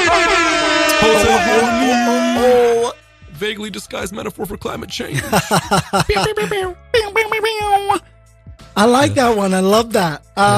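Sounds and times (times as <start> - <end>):
air horn blast: 0.0 - 3.9
speech: 3.4 - 8.1, 8.8 - 10.5
laughter: 5.1 - 6.7.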